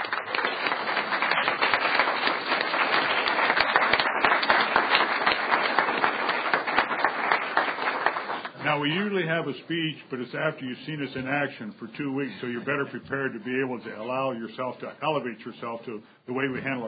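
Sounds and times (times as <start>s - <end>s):
audience applause welcoming a high school senior at a presentation: 0.0s - 8.6s
speech: 8.8s - 16.8s.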